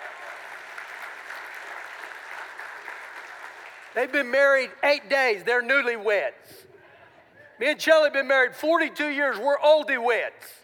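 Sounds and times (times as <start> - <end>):
crowd applauding: 0.0 - 4.0
speech: 4.0 - 6.7, 7.6 - 10.6.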